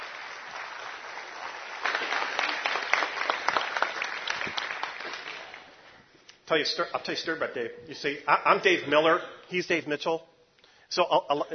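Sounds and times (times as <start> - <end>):
audience applause welcoming a guest on stage: 0.0 - 5.8
speech: 6.5 - 10.3, 10.9 - 11.5.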